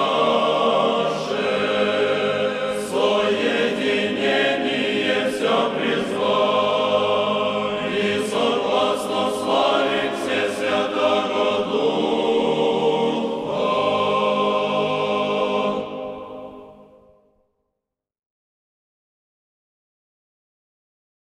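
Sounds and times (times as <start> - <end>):
male choir singing troparion and kontakion: 0.0 - 17.0.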